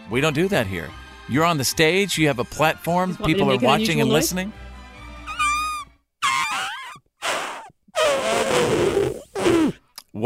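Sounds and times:
speech: 0.1 - 4.6
person imitating a baby elephant with their mouth: 5.3 - 9.8.

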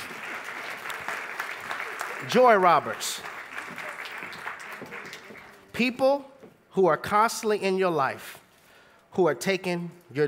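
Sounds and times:
audience applause: 0.0 - 5.7
speech: 2.2 - 3.4, 5.8 - 8.3, 9.2 - 10.2.

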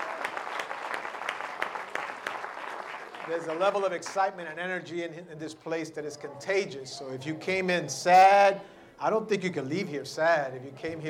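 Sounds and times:
audience applause: 0.0 - 4.4
speech: 3.3 - 11.0.

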